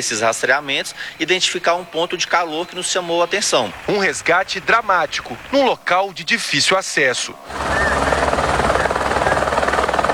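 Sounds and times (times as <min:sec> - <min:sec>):
speech: 0:00.0 - 0:08.1
rescue helicopter rotor thrumming: 0:03.7 - 0:10.1.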